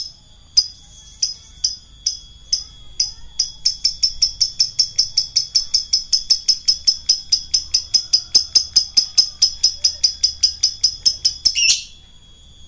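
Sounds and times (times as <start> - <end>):
lovebird singing in the ngekek style: 0.0 - 12.2.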